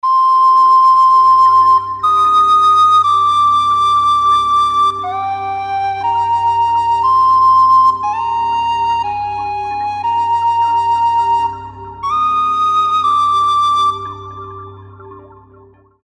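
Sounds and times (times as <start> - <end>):
whistle note in D: 0.0 - 15.7.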